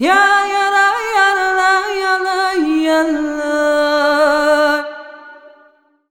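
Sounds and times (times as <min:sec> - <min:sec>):
Balkan-style traditional vocals: 0:00.0 - 0:05.9.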